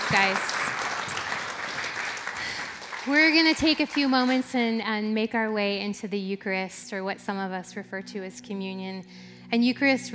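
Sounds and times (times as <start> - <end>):
crowd clapping: 0.0 - 4.8
speech: 0.1 - 0.5, 3.0 - 10.1.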